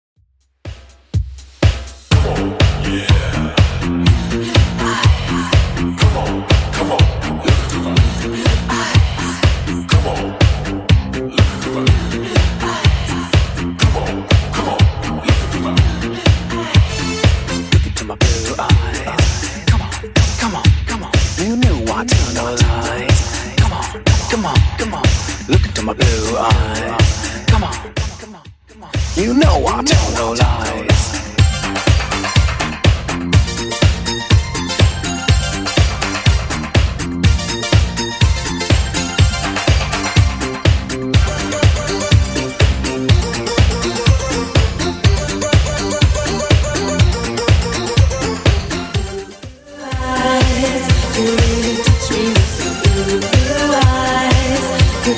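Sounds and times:
80s style beat at 123 bpm: 0.4 - 55.1.

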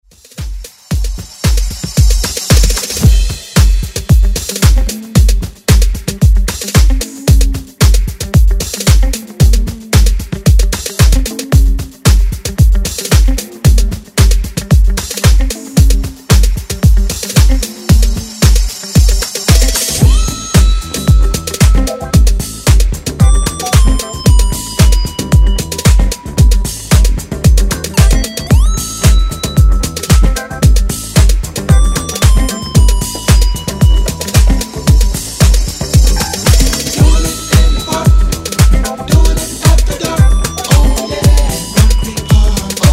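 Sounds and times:
1970s style extended drum groove: 0.0 - 42.9.

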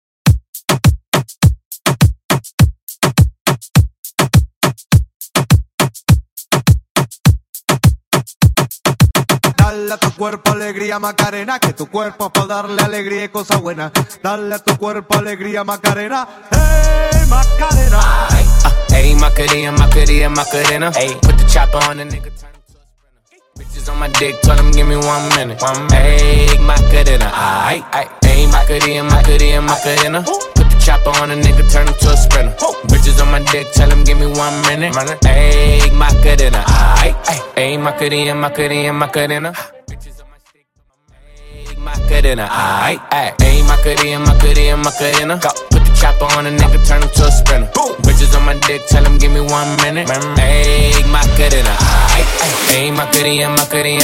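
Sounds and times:
moombahton dance music: 0.2 - 40.5, 41.2 - 54.0.

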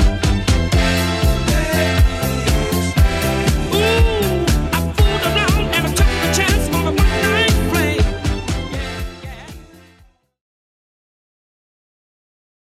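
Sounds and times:
1970s drum machine beat: 0.0 - 9.9.

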